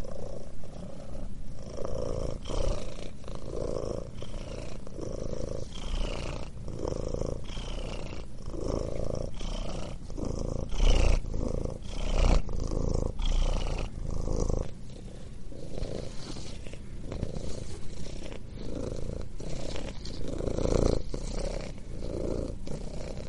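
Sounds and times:
cat purring: 0.0s - 23.2s.

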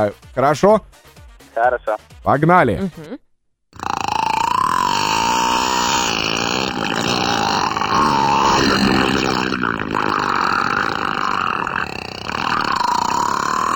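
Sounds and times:
speech: 0.0s - 3.2s, 3.8s - 4.0s
whale vocalizing: 3.8s - 13.7s.

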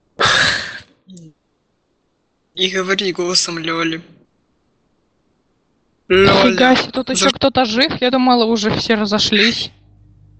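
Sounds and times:
person yawning: 0.2s - 0.9s
soft voiced sound: 0.2s - 1.4s, 2.6s - 4.2s, 6.1s - 9.8s
speech: 1.1s - 1.4s, 2.6s - 4.2s, 6.1s - 9.8s.

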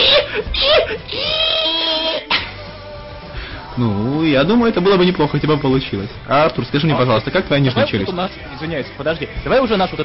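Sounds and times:
human voice imitating a pig in ecstasy: 0.0s - 2.5s
speech: 3.8s - 10.0s.

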